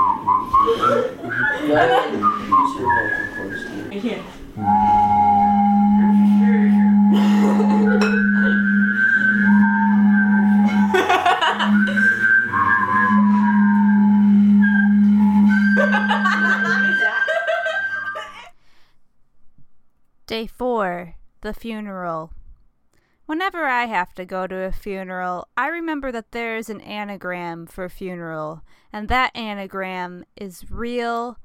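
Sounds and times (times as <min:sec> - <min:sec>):
whistled melody: 0:00.0 - 0:03.9, 0:04.6 - 0:18.5
person laughing: 0:01.0 - 0:02.4, 0:06.6 - 0:08.7, 0:10.7 - 0:12.3, 0:15.8 - 0:18.5
speech: 0:01.7 - 0:03.2, 0:04.0 - 0:04.9, 0:21.5 - 0:22.4, 0:23.3 - 0:31.4
person humming a low drone: 0:04.6 - 0:18.3.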